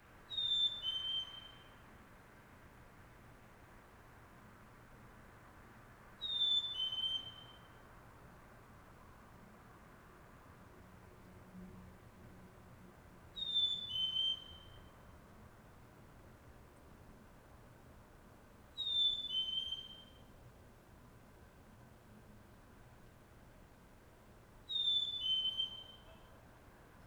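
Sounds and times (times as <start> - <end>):
bird repeating a pure two-note whistle in early morning in Montreal Canada: 0.3 - 1.7, 6.2 - 7.7, 13.4 - 14.7, 18.8 - 20.2, 24.7 - 26.3.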